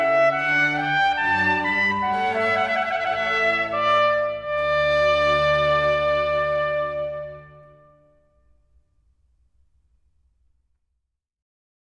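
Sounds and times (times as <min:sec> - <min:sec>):
strings: 0:00.0 - 0:08.0
trumpet: 0:00.0 - 0:08.4.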